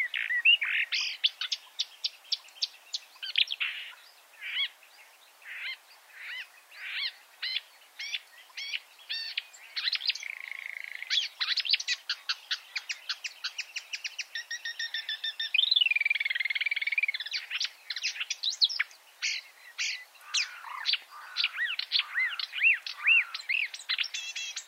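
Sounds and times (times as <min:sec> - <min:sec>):
marsh warbler song: 0:00.0 - 0:24.6.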